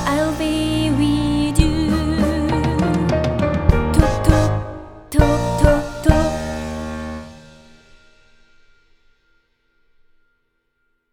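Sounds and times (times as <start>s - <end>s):
soprano singing: 0.0s - 7.2s.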